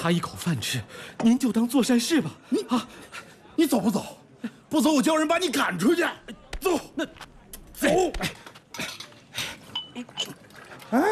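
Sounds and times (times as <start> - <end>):
speech: 0.0 - 8.9, 10.0 - 11.1
bowls and chopsticks clinking as they are picked up in an eatery: 8.7 - 10.8.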